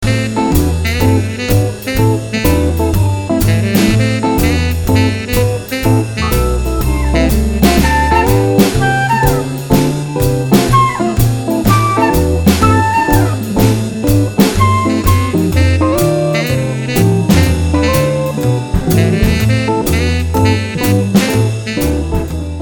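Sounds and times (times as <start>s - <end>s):
jazz music: 0.0s - 22.5s.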